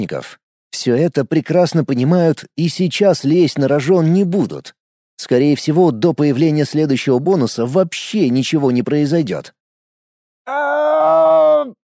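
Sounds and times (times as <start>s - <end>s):
speech: 0.0s - 9.6s, 10.4s - 11.8s
gnome wailing as it falls from above: 10.5s - 11.8s.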